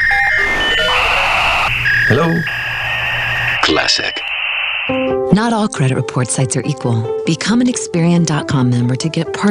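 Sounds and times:
dial-up modem connection noise: 0:00.1 - 0:05.1
speech: 0:02.1 - 0:02.6, 0:03.7 - 0:04.3, 0:04.9 - 0:09.5.

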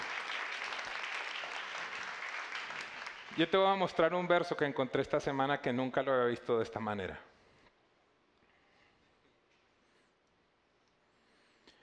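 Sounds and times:
audience applause: 0:00.0 - 0:03.6
speech: 0:03.4 - 0:07.3.

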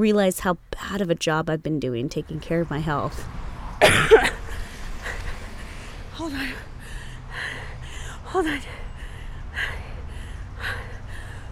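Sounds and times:
speech: 0:00.0 - 0:04.4, 0:06.2 - 0:06.7, 0:08.3 - 0:08.8
low rumble: 0:01.9 - 0:11.5
runner gasping breaths during an asthma attack: 0:04.4 - 0:11.5.

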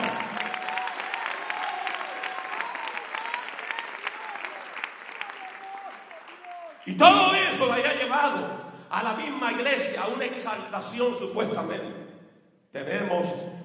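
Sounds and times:
audience applause: 0:00.0 - 0:07.3
speech: 0:06.9 - 0:12.0, 0:12.7 - 0:13.6.

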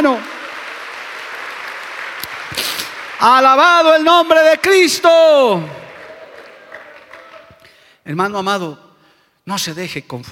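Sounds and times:
speech: 0:00.0 - 0:00.3, 0:03.2 - 0:05.8, 0:08.0 - 0:08.8, 0:09.5 - 0:10.3
audience applause: 0:00.0 - 0:04.8, 0:05.5 - 0:07.7.

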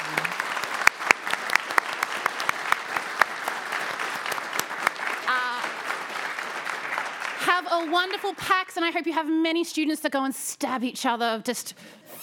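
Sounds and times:
audience applause: 0:00.0 - 0:08.5
speech: 0:07.7 - 0:12.2.

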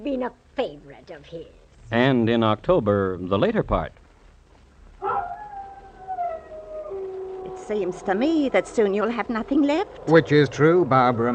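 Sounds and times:
speech: 0:00.0 - 0:04.0, 0:07.6 - 0:11.3
dog howling: 0:05.0 - 0:11.3.

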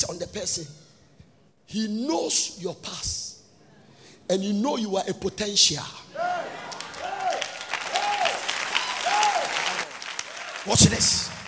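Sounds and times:
speech: 0:00.4 - 0:00.9, 0:01.7 - 0:03.2, 0:04.3 - 0:06.3, 0:10.6 - 0:11.4
large audience clapping: 0:06.5 - 0:11.4.

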